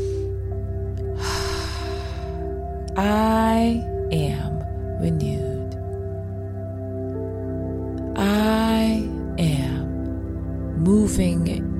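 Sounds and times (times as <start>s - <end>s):
deep inhale during a spoken affirmation: 0.0s - 0.4s, 1.1s - 2.6s
steady droning musical backdrop: 0.0s - 11.7s
speech: 3.0s - 5.5s, 11.1s - 11.7s.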